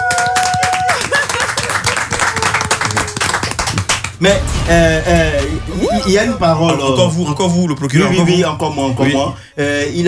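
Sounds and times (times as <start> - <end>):
courtroom audience applause: 0.0 - 4.7
speech: 4.2 - 10.0.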